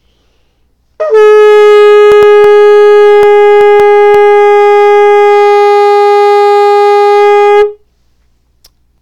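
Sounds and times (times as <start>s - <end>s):
shofar blowing a single long tekiah note: 1.0s - 7.9s.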